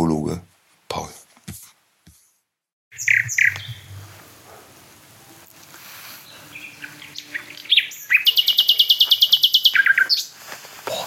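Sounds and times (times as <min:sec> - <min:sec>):
nightingale singing: 0:02.9 - 0:10.4.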